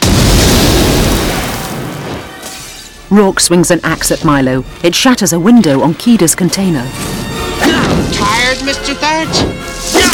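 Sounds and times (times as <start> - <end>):
balloon set alight by a flare bursting into flame: 0.0 - 2.3
speech: 3.1 - 10.1.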